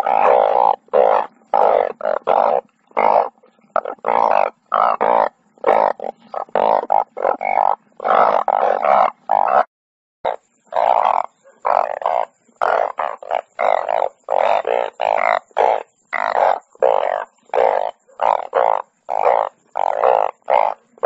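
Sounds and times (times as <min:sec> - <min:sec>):
banded bullfrog droning calls: 0:00.0 - 0:09.7, 0:10.3 - 0:21.0.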